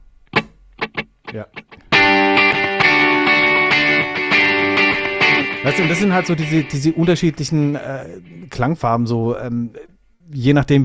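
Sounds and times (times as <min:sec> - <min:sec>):
guitar through Echoplex tape delay simulation: 0:00.3 - 0:08.9
speech: 0:01.3 - 0:02.4, 0:05.6 - 0:10.8.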